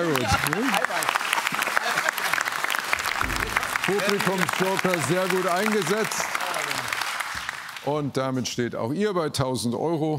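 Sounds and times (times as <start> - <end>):
speech: 0.0 - 0.8, 3.9 - 6.4, 7.9 - 10.1
long sustained applause: 0.0 - 8.1.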